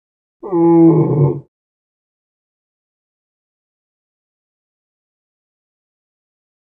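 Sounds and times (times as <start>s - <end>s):
elephant growl: 0.4s - 1.5s.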